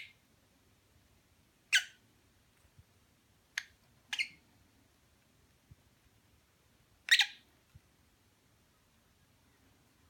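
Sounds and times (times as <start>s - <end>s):
lovebird chirping mating call: 0.0s - 0.2s, 1.7s - 2.0s, 3.5s - 4.4s, 7.0s - 7.5s.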